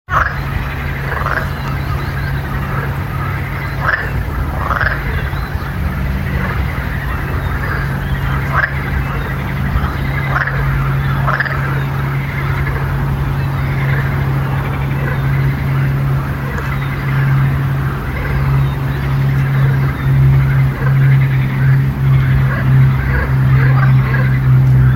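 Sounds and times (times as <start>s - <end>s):
frog croaks: 0.1s - 24.9s.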